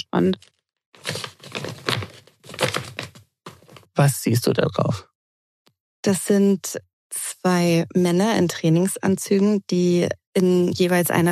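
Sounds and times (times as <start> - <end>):
speech: 0.1 - 0.5, 4.0 - 5.1, 6.0 - 11.3
paper envelope being opened: 0.4 - 3.9.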